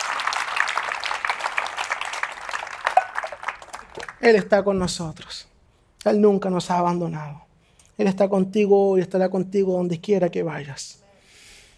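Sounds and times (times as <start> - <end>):
audience applause: 0.0 - 4.2
speech: 4.2 - 11.0.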